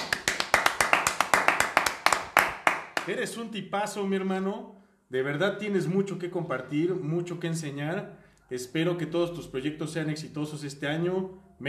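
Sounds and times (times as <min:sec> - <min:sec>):
single person clapping: 0:00.0 - 0:03.2
speech: 0:03.1 - 0:11.6.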